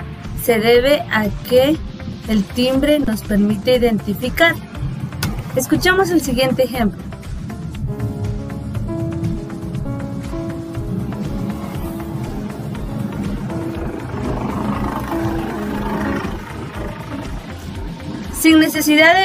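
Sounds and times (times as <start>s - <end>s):
speech: 0.4s - 4.8s, 5.6s - 7.1s, 18.5s - 19.2s
piano playing: 7.8s - 18.4s.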